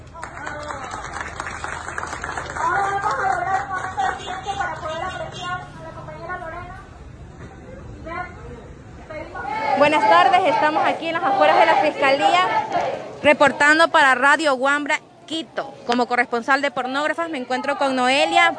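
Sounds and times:
crowd applauding at an outdoor protest: 0:00.0 - 0:04.7
speech: 0:09.8 - 0:18.5.

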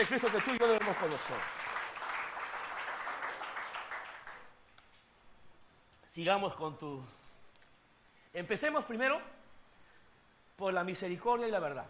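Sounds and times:
speech: 0:00.0 - 0:01.6, 0:06.2 - 0:07.2, 0:08.4 - 0:09.4, 0:10.6 - 0:11.8
audience applause: 0:00.0 - 0:04.5.

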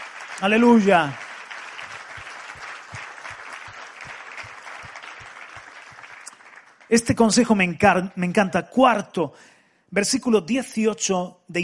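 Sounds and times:
audience applause: 0:00.0 - 0:07.0
speech: 0:00.4 - 0:01.2, 0:06.9 - 0:11.6.

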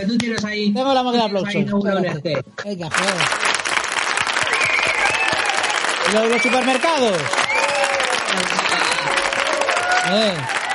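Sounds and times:
speech: 0:00.0 - 0:03.5, 0:06.1 - 0:07.4, 0:08.3 - 0:08.7, 0:10.0 - 0:10.6
group of people applauding: 0:02.9 - 0:10.7.

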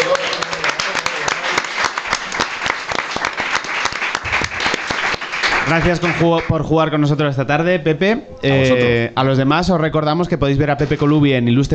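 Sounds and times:
audience applause: 0:00.0 - 0:06.5
speech: 0:05.7 - 0:11.7.

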